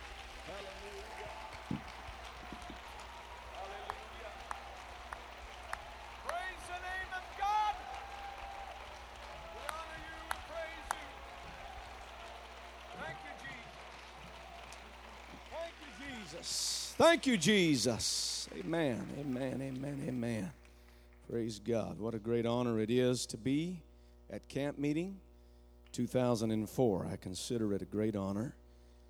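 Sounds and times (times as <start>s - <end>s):
audience clapping hands: 0.0s - 21.3s
speech: 16.5s - 20.6s, 21.3s - 25.2s, 26.0s - 28.6s.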